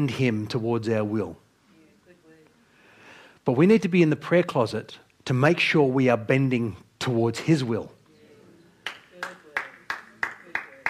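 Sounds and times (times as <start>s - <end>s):
speech: 0.0s - 1.4s, 3.4s - 8.0s
scattered applause from church audience: 8.8s - 10.8s.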